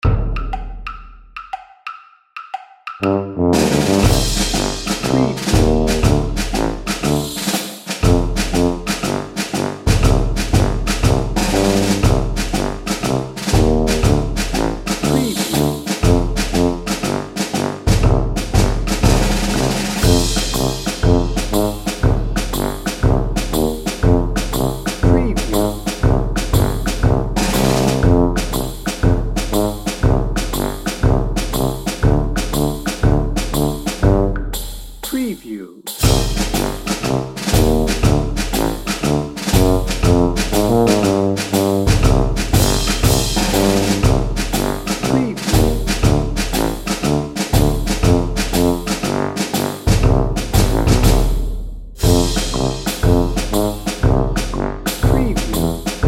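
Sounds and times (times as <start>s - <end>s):
tuba: 3.0s - 34.6s, 35.9s - 56.0s.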